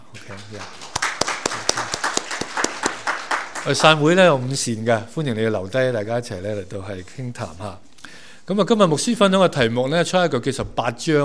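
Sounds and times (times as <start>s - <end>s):
church congregation clapping at a worship service: 0.0s - 4.6s
speech: 0.3s - 0.9s, 3.6s - 7.9s, 8.5s - 11.2s.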